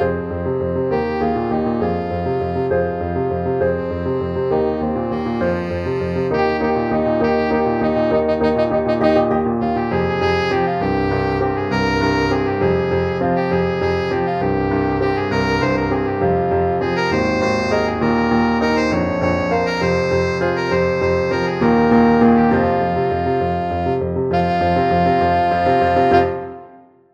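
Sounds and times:
tenor saxophone: 0:00.0 - 0:27.0.

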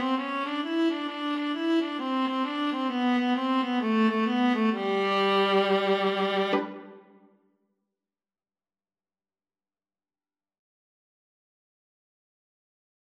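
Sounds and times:
boogie viola duet: 0:00.0 - 0:07.0.

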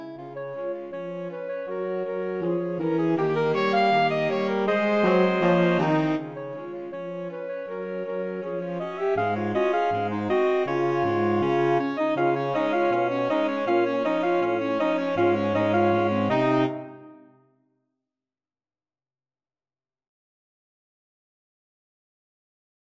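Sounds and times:
saxophone ensemble: 0:00.0 - 0:17.3.

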